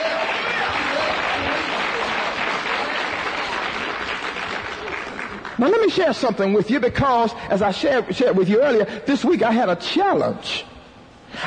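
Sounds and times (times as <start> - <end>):
audience clapping: 0.0 - 6.0
speech: 5.6 - 10.7.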